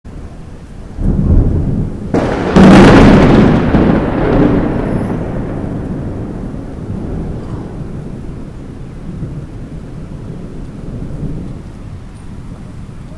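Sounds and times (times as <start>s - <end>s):
tropical lightning strike: 0.9s - 11.7s.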